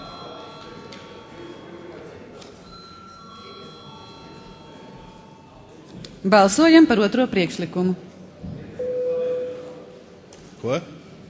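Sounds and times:
parliament voting bell ringing: 0.0s - 5.9s
murmur of voices: 0.0s - 11.2s
speech: 6.2s - 8.1s, 10.7s - 11.0s.

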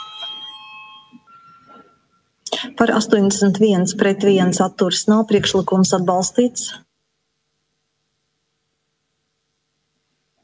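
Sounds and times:
parliament voting bell electronic tone: 0.0s - 2.4s
speech: 2.6s - 6.8s.

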